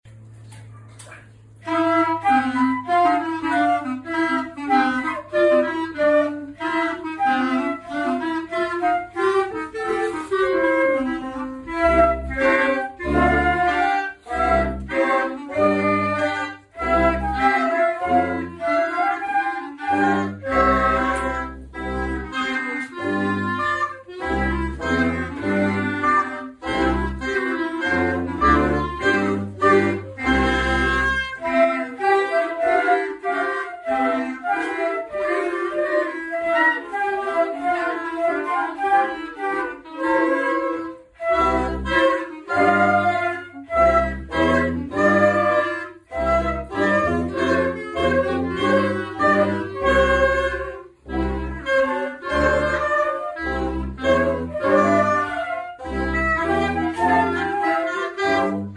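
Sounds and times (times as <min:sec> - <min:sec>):
orchestral wind instruments: 0:00.1 - 0:58.7.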